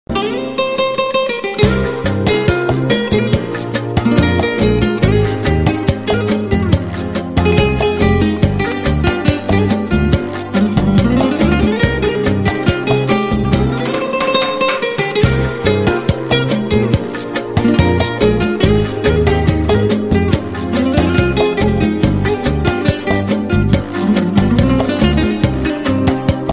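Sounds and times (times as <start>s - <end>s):
Spanish guitar ringtone: 0.1s - 26.2s.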